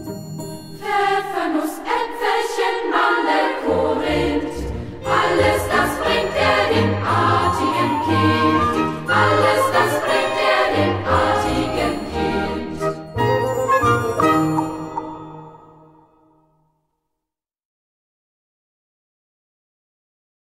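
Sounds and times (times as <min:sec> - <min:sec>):
children's choir: 0:00.8 - 0:16.1.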